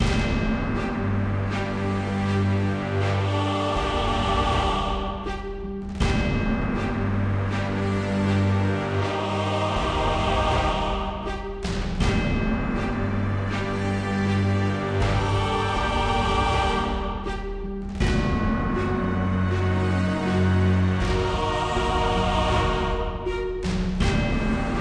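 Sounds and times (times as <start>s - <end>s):
general music bed: 0.0s - 24.7s.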